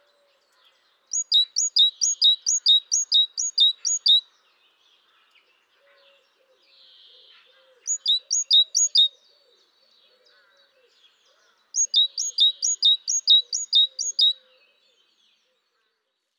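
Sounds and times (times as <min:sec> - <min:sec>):
great tit ringing song: 0:01.1 - 0:04.2, 0:07.9 - 0:09.1, 0:11.8 - 0:14.3.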